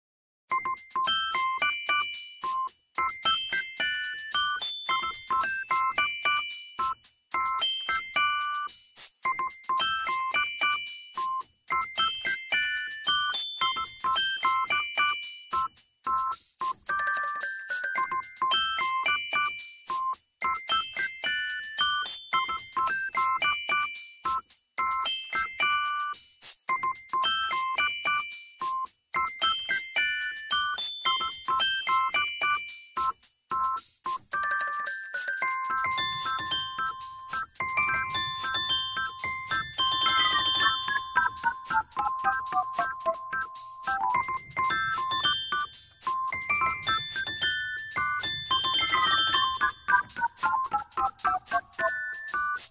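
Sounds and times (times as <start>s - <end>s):
music: 0.5s - 52.6s.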